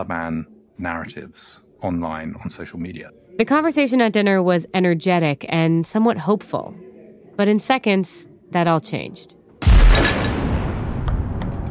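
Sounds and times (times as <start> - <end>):
speech: 0.0 - 6.8, 7.4 - 9.4
huge explosion: 9.6 - 11.6.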